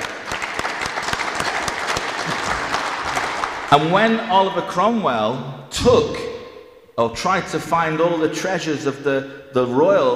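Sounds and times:
round of applause: 0.0s - 4.4s
speech: 3.7s - 6.2s, 7.0s - 10.1s.

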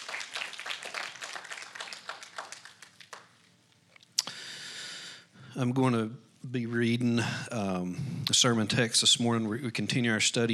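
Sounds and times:
audience hand clapping: 0.0s - 3.5s
speech: 5.6s - 10.5s.

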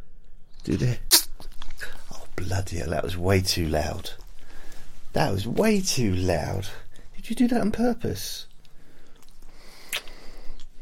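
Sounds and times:
speech: 0.7s - 1.1s, 1.8s - 4.2s, 5.2s - 8.5s
person sneezing: 1.1s - 1.4s.

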